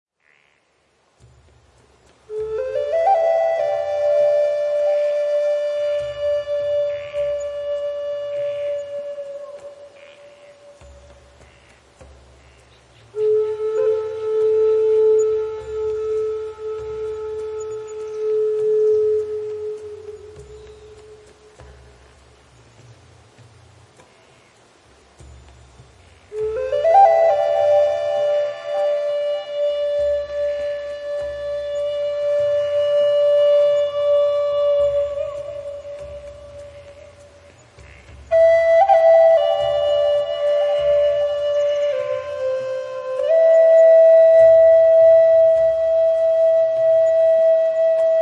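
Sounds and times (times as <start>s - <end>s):
gentle rain: 0.1s - 48.1s
relaxing Native American flute music: 1.2s - 48.1s.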